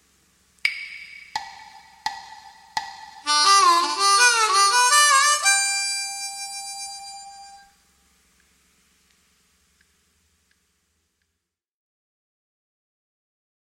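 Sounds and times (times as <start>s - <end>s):
gaita blues lick: 2.8s - 7.7s.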